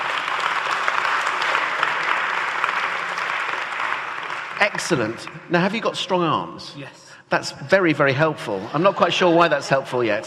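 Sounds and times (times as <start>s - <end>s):
audience applause: 0.0s - 5.8s
speech: 4.6s - 10.2s.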